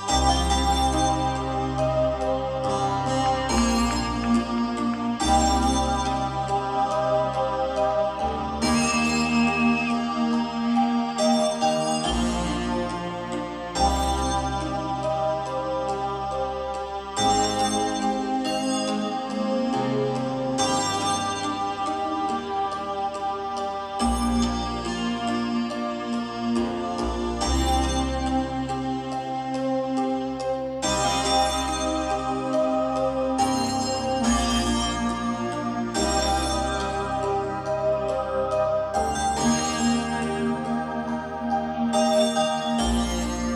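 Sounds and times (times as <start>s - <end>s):
instrumental music: 0.0s - 43.5s.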